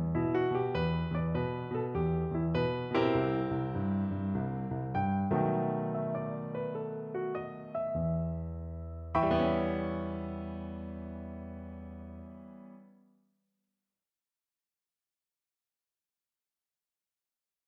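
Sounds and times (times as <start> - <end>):
piano in a minor key: 0.0 - 13.0.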